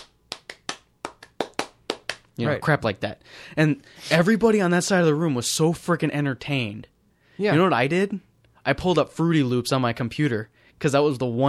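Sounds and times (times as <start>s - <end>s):
hands clapping a simple rhythmic beat: 0.0s - 2.4s
speech: 2.4s - 11.4s.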